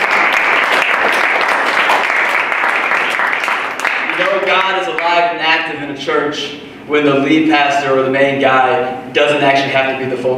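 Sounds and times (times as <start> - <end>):
church congregation clapping and cheering for two guest pastors: 0.0 - 5.2
speech: 4.2 - 10.3.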